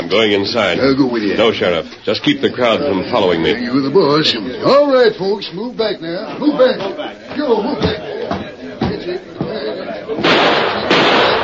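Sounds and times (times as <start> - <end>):
speech: 0.1 - 8.0
gunshot through a window: 10.2 - 11.4.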